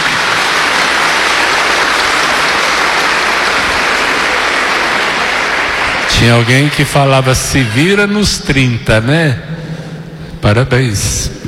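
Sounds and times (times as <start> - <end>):
crowd applauding: 0.0 - 8.2
speech: 6.2 - 9.6, 10.4 - 11.4.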